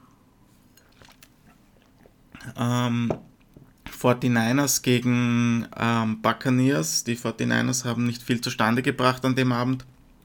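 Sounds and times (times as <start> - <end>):
person sipping water: 0.6 - 2.6
speech: 2.5 - 3.3, 4.0 - 9.9.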